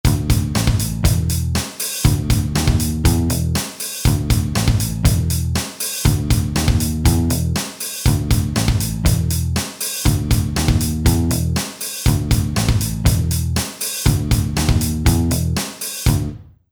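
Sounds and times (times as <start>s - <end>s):
rock music: 0.1s - 16.3s.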